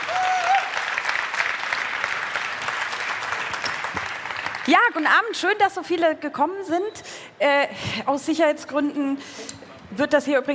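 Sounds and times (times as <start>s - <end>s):
audience applauding: 0.0s - 5.1s
speech: 4.7s - 10.5s.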